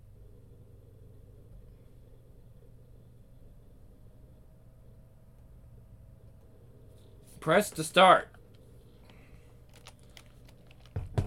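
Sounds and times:
speech: 7.4 - 8.4
typing on a computer keyboard: 9.6 - 11.0.

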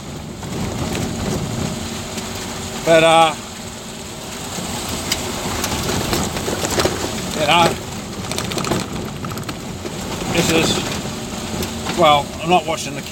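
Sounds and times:
car engine and road rumble: 0.0 - 13.1
speech: 2.9 - 3.4, 7.4 - 7.8, 10.4 - 10.9, 12.0 - 13.1
gravel rattling against the underside of a car: 4.9 - 11.0.

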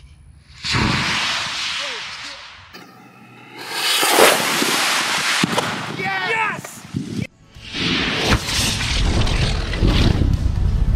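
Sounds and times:
rocket hitting propane tank fireball explosion: 0.5 - 2.8, 3.4 - 10.9
person shouting excitedly: 6.0 - 6.8.

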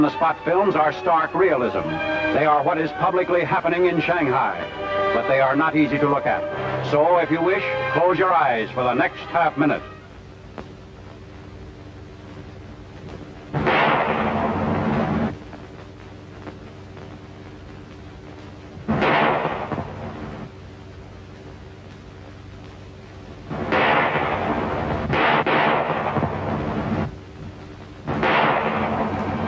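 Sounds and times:
speech: 0.0 - 9.9
gunshots of a public execution: 13.5 - 15.3, 18.9 - 20.2, 23.5 - 27.1, 28.1 - 29.3.

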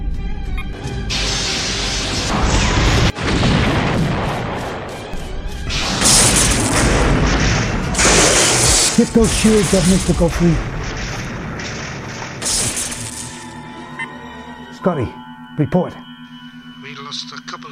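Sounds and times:
explosions in a space battle: 1.1 - 13.4
starship phaser fire in a space battle: 1.1 - 13.5
speech: 9.1 - 10.8, 14.8 - 16.0.

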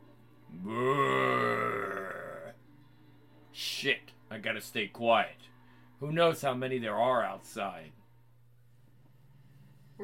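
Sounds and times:
zombie growl from outside: 0.5 - 2.6
speech: 3.8 - 8.0.

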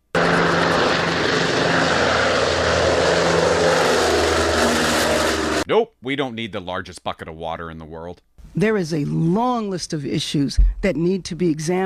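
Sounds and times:
large propeller water bomber aircraft flying overhead: 0.0 - 5.6
speech: 6.0 - 11.8.

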